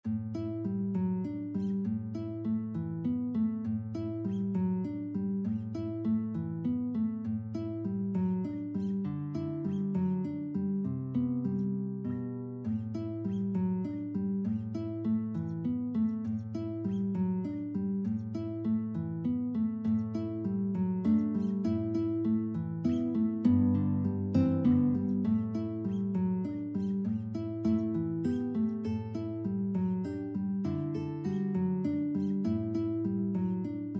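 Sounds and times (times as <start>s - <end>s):
guitar duet: 0.0s - 33.9s.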